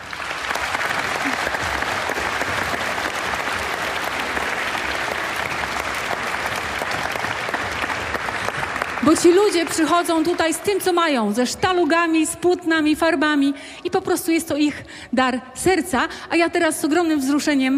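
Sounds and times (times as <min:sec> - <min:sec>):
audience applause: 0:00.0 - 0:11.2
speech: 0:09.1 - 0:17.7.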